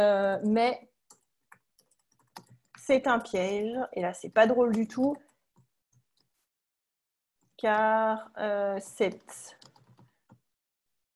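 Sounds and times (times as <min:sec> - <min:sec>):
speech: 0:00.0 - 0:00.9, 0:02.9 - 0:05.3, 0:07.6 - 0:09.6
typing on a computer keyboard while writing a text: 0:01.1 - 0:06.1, 0:09.0 - 0:10.4.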